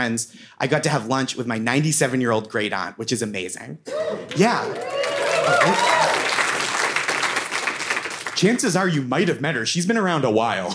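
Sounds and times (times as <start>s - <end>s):
speech: 0.0s - 6.2s, 8.4s - 10.7s
applause: 4.3s - 8.7s.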